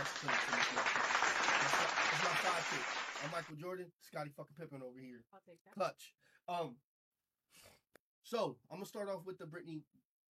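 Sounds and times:
applause: 0:00.0 - 0:03.5
speech: 0:00.1 - 0:00.6, 0:02.4 - 0:06.9, 0:07.5 - 0:10.3.

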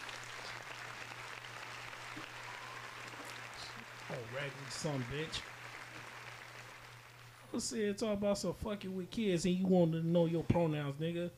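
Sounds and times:
round of applause: 0:00.0 - 0:07.6
speech: 0:04.1 - 0:05.5, 0:07.5 - 0:11.3.

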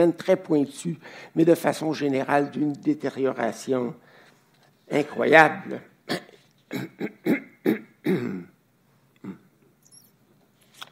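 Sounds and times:
speech: 0:00.0 - 0:04.1, 0:04.9 - 0:07.2
throat clearing: 0:06.1 - 0:08.6, 0:09.2 - 0:09.6.

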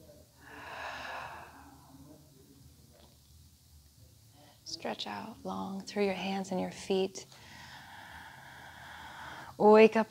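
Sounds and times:
person breathing in through the nose and out through the mouth: 0:00.4 - 0:01.9, 0:07.4 - 0:09.6
speech: 0:04.7 - 0:07.5, 0:09.6 - 0:10.0.

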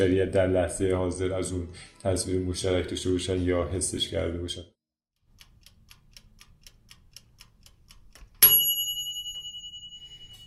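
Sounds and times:
speech: 0:00.0 - 0:04.8
stove timer bell ringing: 0:08.4 - 0:10.4.

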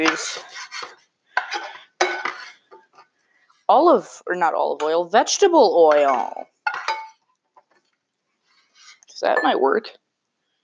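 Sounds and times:
speech: 0:00.0 - 0:00.5, 0:03.7 - 0:06.6, 0:09.2 - 0:10.0
kitchen clatter: 0:00.0 - 0:03.0, 0:05.8 - 0:07.8
utensil scraping butter out of a pan while cooking Johnny cakes: 0:00.0 - 0:03.2, 0:08.4 - 0:09.1.

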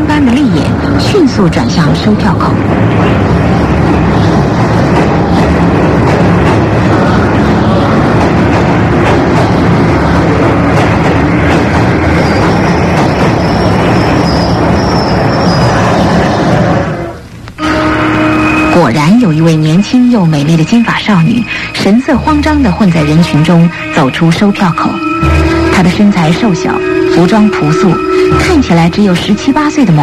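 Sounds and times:
train arriving at station, rumbling and clattering: 0:00.0 - 0:30.0
speech: 0:01.4 - 0:04.7, 0:20.1 - 0:30.0
high thin train whistle: 0:12.0 - 0:19.5, 0:22.8 - 0:30.0.

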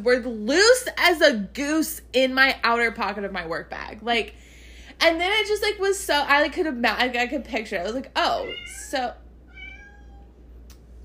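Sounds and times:
speech: 0:00.0 - 0:09.2
cat meowing: 0:08.4 - 0:10.4.

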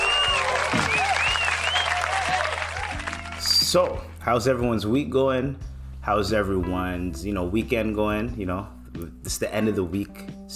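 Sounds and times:
crowd applause: 0:00.0 - 0:03.5
faint whistles and cheers: 0:00.0 - 0:03.8
speech: 0:03.7 - 0:10.5.

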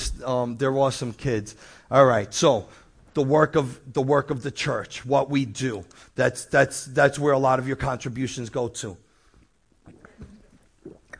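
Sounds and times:
speech: 0:00.2 - 0:09.0
loud gulp: 0:09.8 - 0:11.1.

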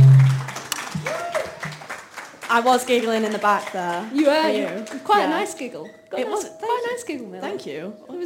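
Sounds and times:
low hum: 0:00.0 - 0:00.5
crowd whooping: 0:00.0 - 0:01.8
audience clapping: 0:00.0 - 0:05.5
speech: 0:02.6 - 0:08.2.

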